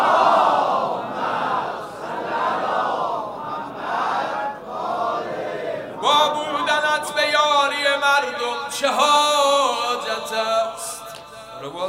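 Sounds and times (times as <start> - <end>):
large crowd chanting salawat at a religious gathering: 0.0 - 7.8
speech: 8.0 - 10.8.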